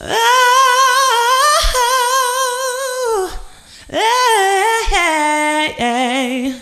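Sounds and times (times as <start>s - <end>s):
ad-lib female vocal ahh: 0.0s - 6.5s.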